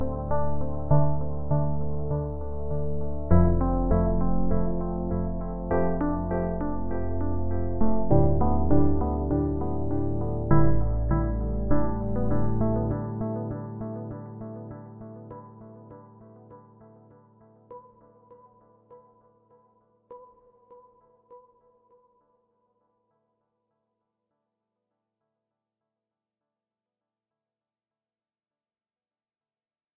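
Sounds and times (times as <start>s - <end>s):
crystal ambient music: 0.0s - 22.0s.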